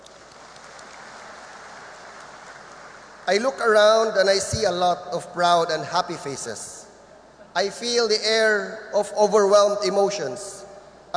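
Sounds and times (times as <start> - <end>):
crowd applauding: 0.0 - 3.4
speech: 3.3 - 6.8, 7.6 - 11.1.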